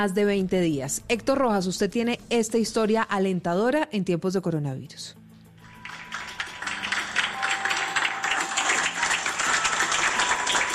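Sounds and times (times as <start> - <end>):
speech: 0.0 - 5.2
staff of the CIOSAT clinic in Bogotá applauding: 5.6 - 10.7.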